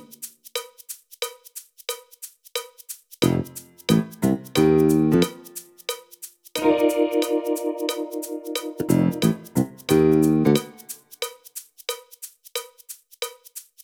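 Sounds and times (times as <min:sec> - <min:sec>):
music intro: 0:03.2 - 0:05.7, 0:06.6 - 0:11.0.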